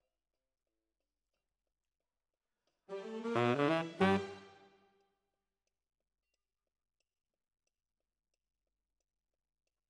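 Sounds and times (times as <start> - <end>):
tenor singing: 2.9 - 4.6.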